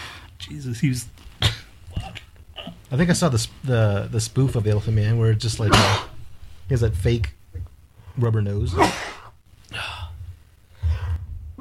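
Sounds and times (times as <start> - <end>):
speech: 0.5 - 1.2, 2.9 - 6.1, 6.7 - 9.1
person sneezing: 5.7 - 6.2, 8.7 - 9.3.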